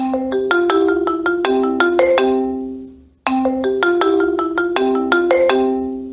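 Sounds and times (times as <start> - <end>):
ringtone: 0.0 - 6.1.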